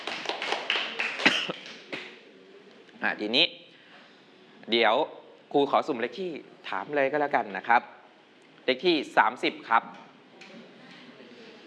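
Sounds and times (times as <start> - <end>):
clapping: 0.0 - 2.2
speech: 3.0 - 3.6, 4.7 - 7.9, 8.7 - 10.0.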